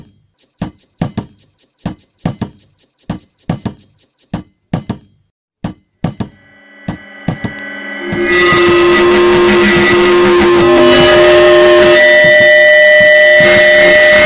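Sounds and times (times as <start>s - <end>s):
soundscape: 6.3s - 14.2s.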